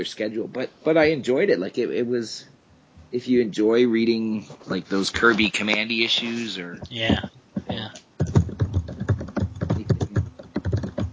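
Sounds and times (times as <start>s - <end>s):
speech: 0.0s - 2.5s, 3.1s - 8.0s
typing on a keyboard: 8.2s - 11.1s.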